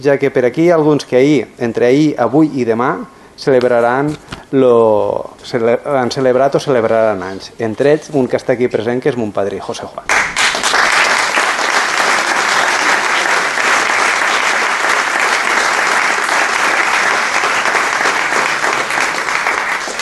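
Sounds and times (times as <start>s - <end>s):
speech: 0.0s - 10.4s
crowd applauding: 10.1s - 20.0s.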